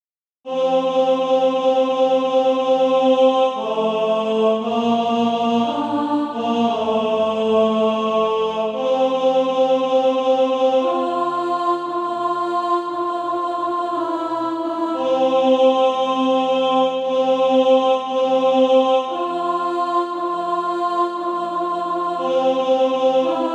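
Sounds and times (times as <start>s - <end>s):
alto voice singing SATB practice music: 0.4s - 23.5s.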